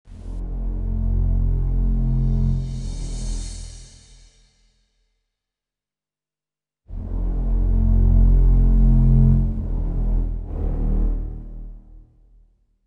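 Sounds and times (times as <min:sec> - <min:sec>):
background music: 0:00.1 - 0:04.2, 0:06.9 - 0:12.5.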